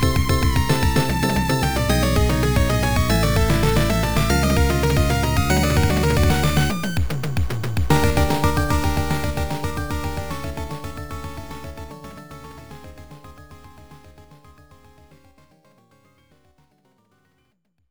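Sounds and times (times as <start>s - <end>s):
menacing beat: 0.0s - 11.9s.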